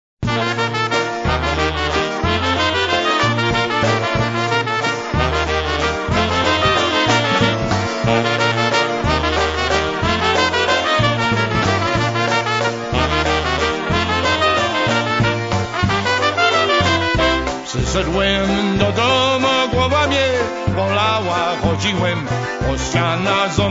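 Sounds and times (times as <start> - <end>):
waltz music: 0.3 - 23.6.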